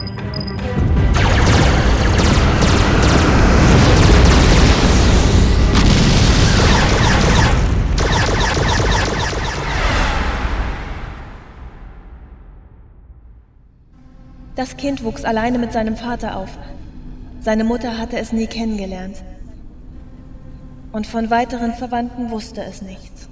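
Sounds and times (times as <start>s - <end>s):
heavy weapons firing: 0.8s - 9.9s
explosions: 0.8s - 13.9s
speech: 14.6s - 16.8s, 17.4s - 19.3s, 20.9s - 23.2s.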